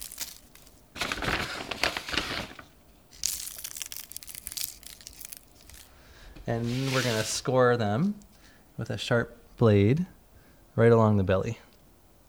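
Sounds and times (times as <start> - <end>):
pressed balls of salt sprinkled onto soft pretzels: 0.0 - 1.2, 2.2 - 7.5
speech: 6.5 - 10.2, 10.8 - 11.6.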